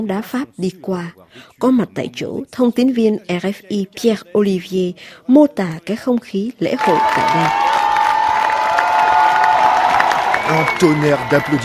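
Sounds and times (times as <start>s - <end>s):
speech: 0.0s - 7.6s, 10.5s - 11.6s
crowd applauding as team bus passes: 6.8s - 11.6s.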